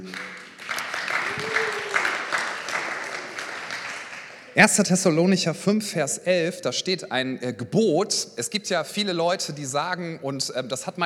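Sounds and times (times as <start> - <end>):
audience applause: 0.0 - 4.6
speech: 4.6 - 11.0.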